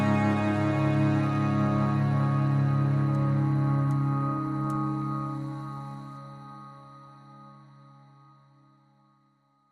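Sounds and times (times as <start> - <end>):
cello: 0.0 - 7.7.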